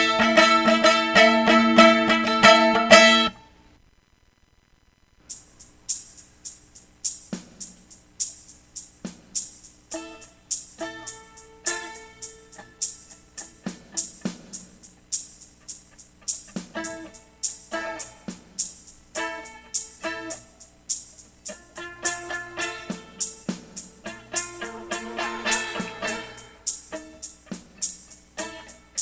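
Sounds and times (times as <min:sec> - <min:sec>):
mandolin: 0:00.0 - 0:03.5, 0:09.9 - 0:14.9, 0:16.2 - 0:18.4, 0:19.2 - 0:20.6, 0:21.4 - 0:29.0.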